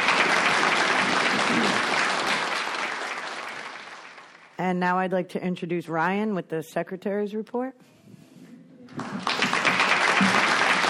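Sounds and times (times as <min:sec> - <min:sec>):
crowd clapping: 0:00.0 - 0:04.6, 0:09.0 - 0:10.8
speech: 0:04.7 - 0:07.9.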